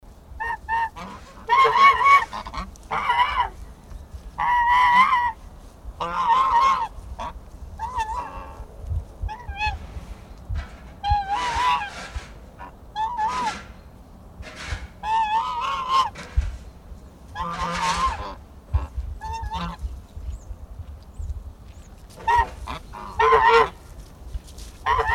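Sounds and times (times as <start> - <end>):
geese: 0.4 - 3.6, 4.3 - 8.7, 9.3 - 10.0, 11.0 - 13.8, 14.4 - 16.5, 17.3 - 19.9, 22.1 - 23.8, 24.8 - 25.1.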